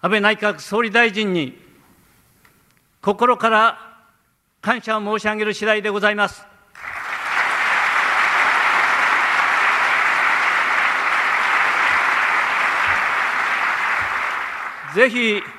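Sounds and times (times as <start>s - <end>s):
speech: 0.0s - 1.6s, 3.0s - 3.9s, 4.6s - 7.0s, 15.0s - 15.5s
audience applause: 6.8s - 15.5s.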